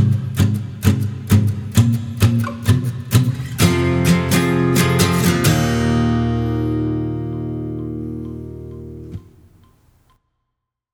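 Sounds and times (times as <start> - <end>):
guitar soloing: 0.0 - 9.8
backing track: 1.4 - 9.8.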